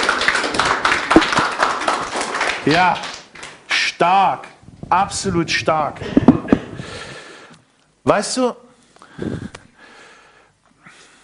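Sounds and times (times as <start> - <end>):
audience applause at a German-language talk: 0.0 - 3.6
speech: 2.6 - 3.1, 4.0 - 6.4, 8.0 - 8.6.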